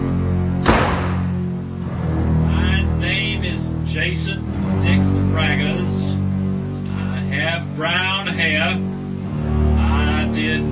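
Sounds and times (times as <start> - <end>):
steady tonal background: 0.0 - 10.7
door being closed with a dull heavy thud: 0.6 - 1.4.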